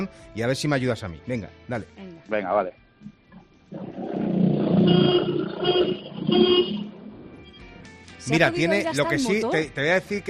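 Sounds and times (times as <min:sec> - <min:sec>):
speech: 0:00.0 - 0:03.2, 0:04.8 - 0:06.7, 0:08.2 - 0:10.2
short car horn honks: 0:04.7 - 0:07.0.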